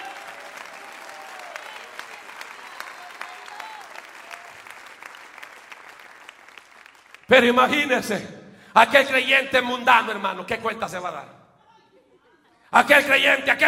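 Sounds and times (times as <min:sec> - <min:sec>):
audience applauding: 0:00.0 - 0:07.5
speech: 0:07.3 - 0:11.4, 0:12.7 - 0:13.6.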